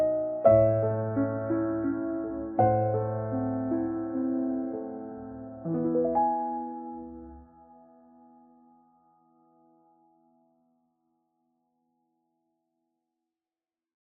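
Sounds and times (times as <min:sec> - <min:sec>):
piano cover: 0:00.0 - 0:09.1.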